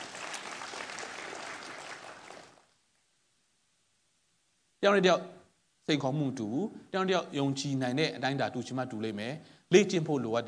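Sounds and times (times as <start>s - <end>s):
congregation clapping hands in praise during worship: 0.0s - 2.7s
speech: 4.8s - 10.4s.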